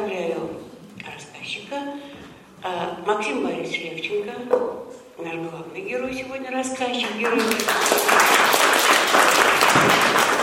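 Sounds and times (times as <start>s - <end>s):
speech: 2.6s - 8.6s
audience applause: 7.3s - 10.4s.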